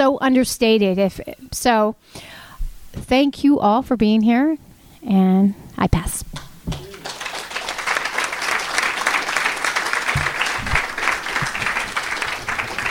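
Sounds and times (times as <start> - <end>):
speech: 0.0 - 6.8
audience applause: 6.7 - 12.8.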